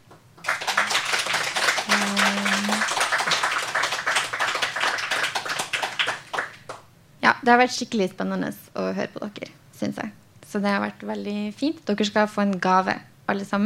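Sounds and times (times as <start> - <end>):
audience applause: 0.4 - 6.8
speech: 7.4 - 13.6.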